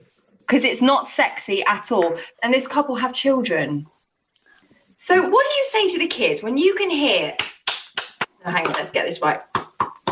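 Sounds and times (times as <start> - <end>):
speech: 0.5 - 4.0, 5.0 - 7.5, 8.4 - 9.6
rhythmic clapping: 7.4 - 10.1.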